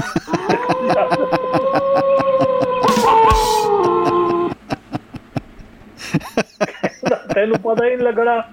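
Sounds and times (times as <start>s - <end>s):
laughter: 0.0s - 8.2s
person imitating a dog with a howl: 0.3s - 4.5s
steady ticking beat: 2.8s - 3.7s
speech: 7.4s - 8.5s.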